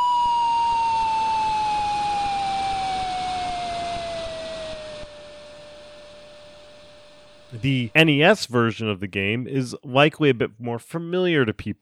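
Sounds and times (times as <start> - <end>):
slide whistle from a video game: 0.0 - 6.1
speech: 7.5 - 11.8.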